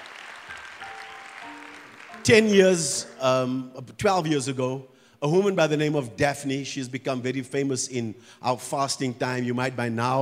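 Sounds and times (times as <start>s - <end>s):
audience clapping: 0.0s - 3.2s
speech: 2.2s - 10.2s.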